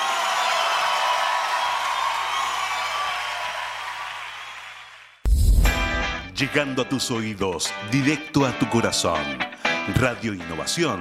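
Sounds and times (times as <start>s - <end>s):
crowd clapping and cheering loudly: 0.0s - 6.4s
speech: 6.4s - 10.9s.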